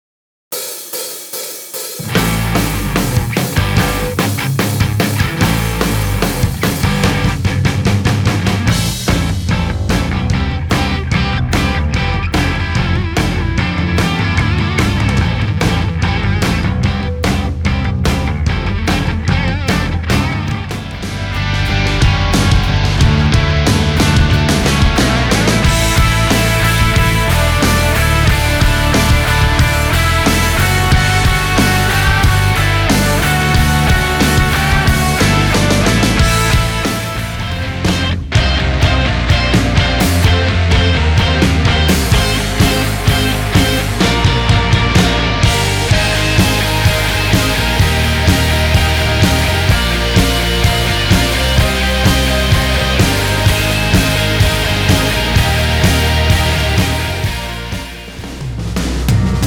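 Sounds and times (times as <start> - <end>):
rock music: 0.5 - 59.4.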